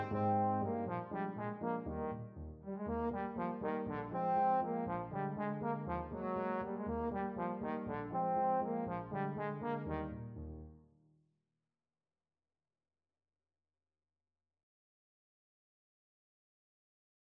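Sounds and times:
trombone playing an ecossaise: 0.0 - 10.6.

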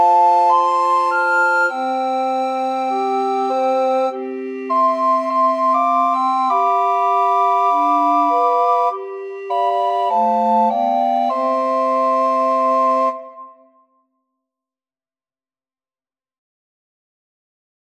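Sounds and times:
recorder quartet: 0.0 - 13.6.

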